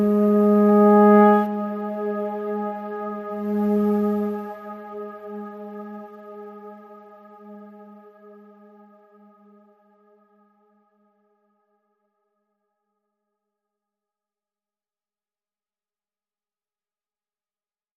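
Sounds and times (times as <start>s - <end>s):
synthesizers: 0.0s - 7.6s.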